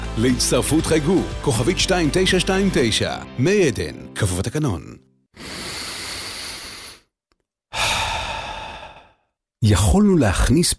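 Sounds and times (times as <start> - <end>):
speech: 0.2 - 5.5, 9.6 - 10.7
long steady breath drawn in: 5.4 - 7.1, 7.7 - 9.3.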